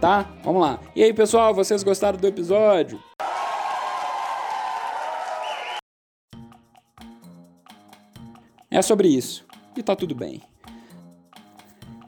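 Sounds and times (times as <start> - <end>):
speech: 0.0 - 3.1, 8.7 - 10.5
recorded crowd cheering and applause sound effect: 3.2 - 5.8.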